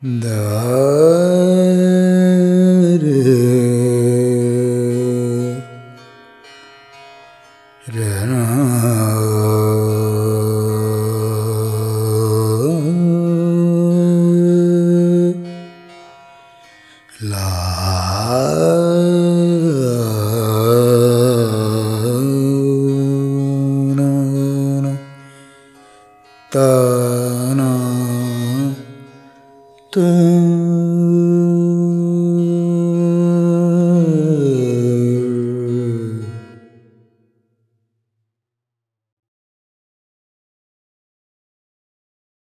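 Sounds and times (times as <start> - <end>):
male vocal alaap in world pop style: 0.0 - 5.8, 7.9 - 15.6, 17.1 - 25.2, 26.5 - 29.1, 30.0 - 36.9.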